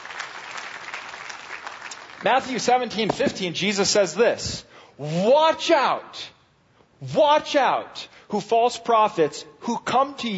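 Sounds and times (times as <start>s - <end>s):
crowd applauding: 0.0s - 2.9s
speech: 2.2s - 6.3s, 7.0s - 10.3s.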